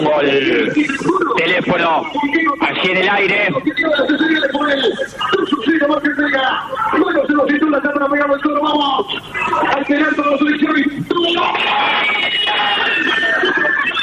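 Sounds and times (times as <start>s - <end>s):
laughter: 0.0s - 7.3s, 11.1s - 14.0s
speech: 0.0s - 10.6s
large crowd of football fans cheering after a penalty goal: 11.2s - 14.0s.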